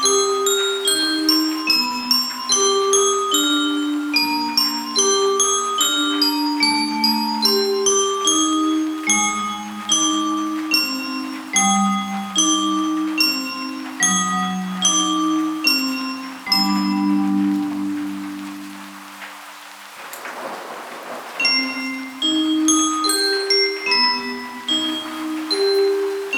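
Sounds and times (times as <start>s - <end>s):
gloomy music box: 0.0s - 19.8s, 21.2s - 26.3s.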